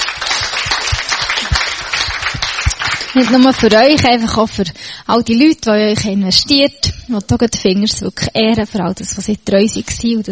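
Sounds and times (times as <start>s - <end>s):
audience applause: 0.0s - 4.0s
speech: 3.2s - 10.3s.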